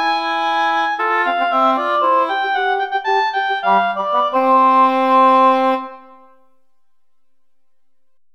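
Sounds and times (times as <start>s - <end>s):
Christmas song: 0.0s - 6.6s.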